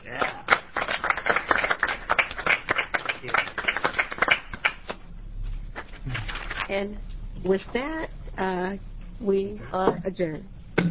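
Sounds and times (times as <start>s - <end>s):
round of applause: 0.0s - 5.0s
speech: 6.8s - 10.8s.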